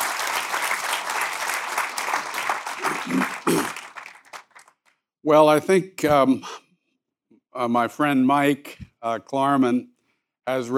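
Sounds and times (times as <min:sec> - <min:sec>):
audience applause: 0:00.0 - 0:04.8
speech: 0:05.3 - 0:06.6, 0:07.6 - 0:10.7.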